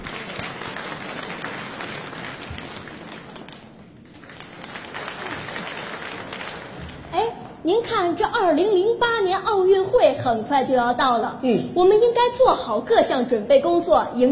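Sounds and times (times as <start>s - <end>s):
audience applause at a comedy performance: 0.0s - 7.2s
crowd noise: 0.0s - 8.2s
speech: 7.7s - 14.3s.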